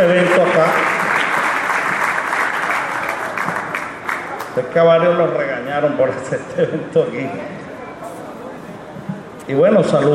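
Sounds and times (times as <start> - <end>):
audience applause: 0.0 - 4.6
speech: 4.6 - 7.6, 9.5 - 10.1.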